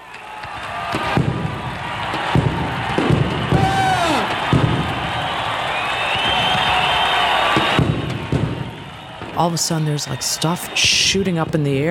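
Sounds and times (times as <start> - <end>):
stadium crowd cheering: 0.0 - 11.8
explosion: 0.9 - 5.4, 7.6 - 8.8
speech: 9.4 - 11.8.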